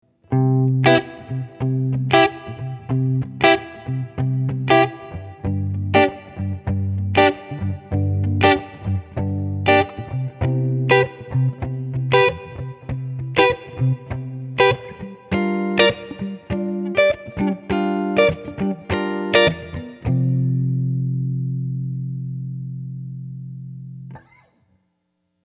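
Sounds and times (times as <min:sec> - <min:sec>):
big sky room reverb: 0:00.0 - 0:24.9.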